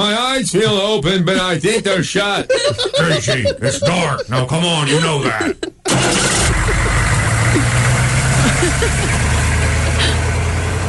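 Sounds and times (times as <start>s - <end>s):
speech: 0.0s - 6.4s, 8.6s - 9.2s
laughter: 0.5s - 10.2s
vehicle engine running as the vehicle starts moving: 2.7s - 10.8s.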